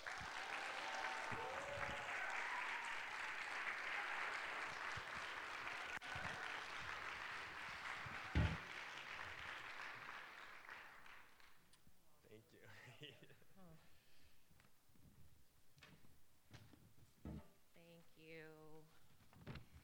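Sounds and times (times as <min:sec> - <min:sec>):
audience applause: 0:00.0 - 0:11.6.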